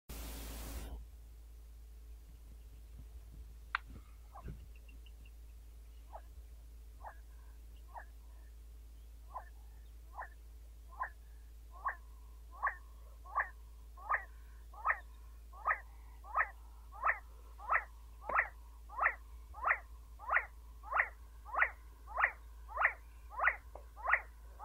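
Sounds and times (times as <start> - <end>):
See-see partridge calling: 3.8 - 6.4, 7.0 - 8.5, 9.2 - 24.6.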